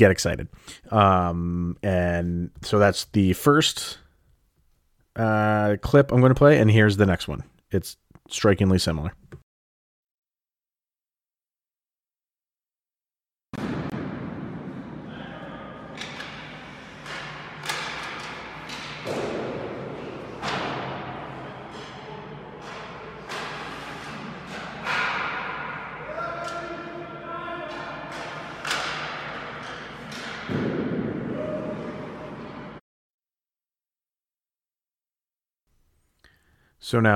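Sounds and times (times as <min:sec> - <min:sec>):
speech: 0:00.0 - 0:04.0, 0:05.2 - 0:09.3, 0:36.9 - 0:37.1
hockey wrist shots striking a goal: 0:13.6 - 0:27.0, 0:27.7 - 0:32.0.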